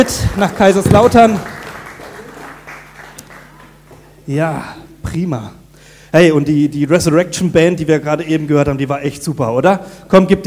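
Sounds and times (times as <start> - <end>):
speech: 0.0 - 1.6, 4.3 - 10.4
audience applause: 0.0 - 4.2.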